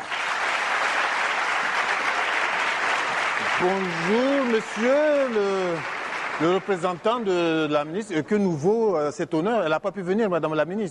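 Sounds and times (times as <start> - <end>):
audience applause: 0.0 - 7.9
speech: 3.6 - 10.8.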